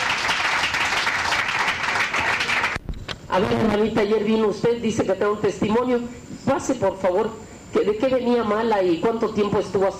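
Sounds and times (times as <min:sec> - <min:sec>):
crowd applause: 0:00.0 - 0:02.8
speech: 0:03.4 - 0:09.9.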